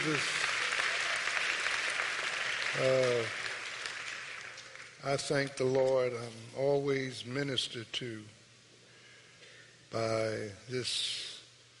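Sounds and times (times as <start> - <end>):
speech: 0.0 - 0.4, 2.8 - 3.4, 5.0 - 8.4, 9.9 - 11.3
audience applauding the choir: 0.0 - 5.0.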